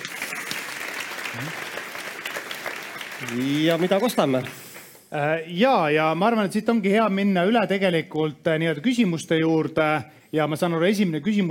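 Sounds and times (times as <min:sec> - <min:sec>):
audience applause: 0:00.0 - 0:04.9
speech: 0:01.4 - 0:01.8, 0:03.2 - 0:11.4.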